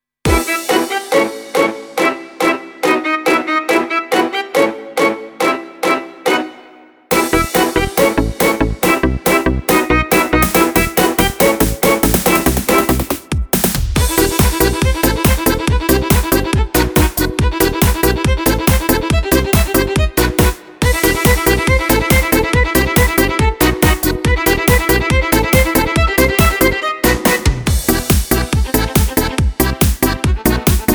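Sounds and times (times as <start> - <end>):
folk music: 0.3 - 30.9.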